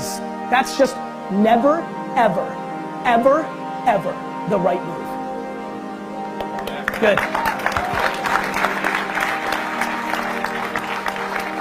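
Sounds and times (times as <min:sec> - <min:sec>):
speech: 0:00.5 - 0:05.0, 0:07.0 - 0:07.6
audience clapping: 0:06.4 - 0:11.5.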